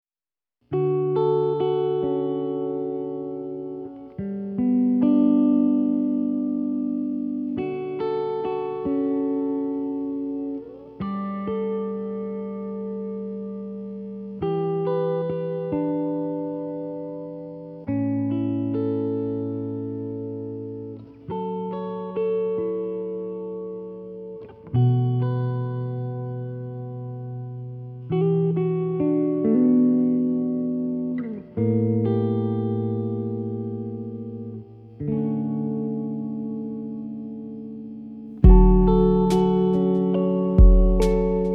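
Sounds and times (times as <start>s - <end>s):
guitar: 0.6s - 41.5s.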